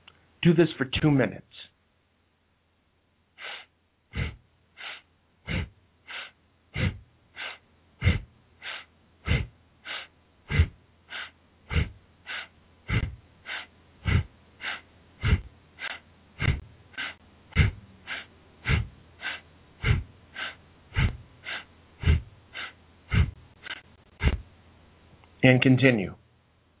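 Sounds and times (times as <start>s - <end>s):
speech: 0.4s - 1.7s, 25.5s - 26.2s
forceful breathing during a standing waist-twist exercise: 3.4s - 24.5s.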